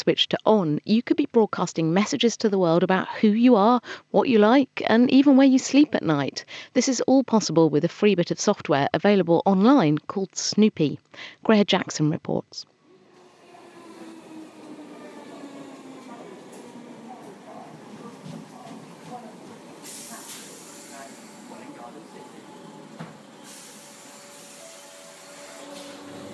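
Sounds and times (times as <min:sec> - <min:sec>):
speech: 0:00.0 - 0:12.7
train travelling along the rails: 0:12.8 - 0:26.3.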